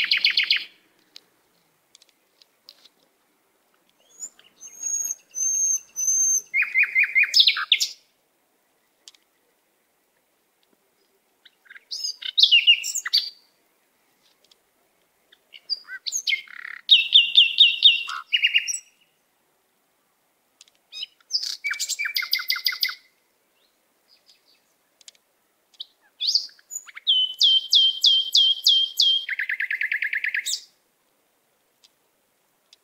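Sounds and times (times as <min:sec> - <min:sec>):
natural bird sounds: 0:00.0 - 0:00.8, 0:04.0 - 0:08.0, 0:11.0 - 0:14.2, 0:15.1 - 0:19.2, 0:20.9 - 0:25.1, 0:25.7 - 0:30.8.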